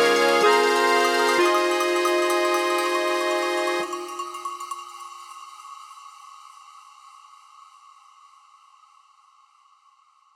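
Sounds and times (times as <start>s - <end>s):
alpine folk music: 0.0s - 4.8s.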